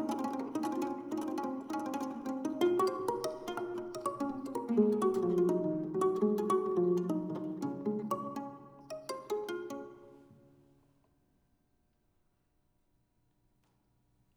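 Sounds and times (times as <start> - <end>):
improvised music interlude: 0.0 - 10.5.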